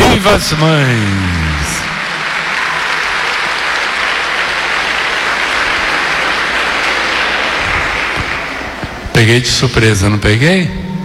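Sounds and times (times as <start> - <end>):
audience applause for the mothers: 0.0 - 9.2
speech: 0.2 - 1.4, 9.2 - 10.8.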